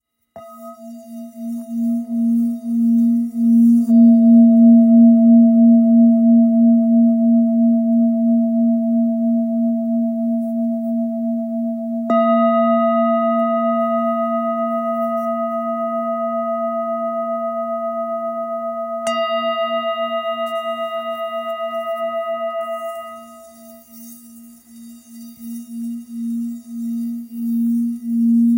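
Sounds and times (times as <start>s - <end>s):
ancient Tibetan singing bowl tuned to A: 0.0s - 28.5s.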